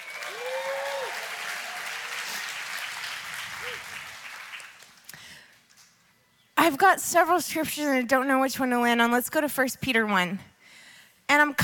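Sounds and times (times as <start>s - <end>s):
audience applause: 0.0s - 5.1s
speech: 6.7s - 10.5s.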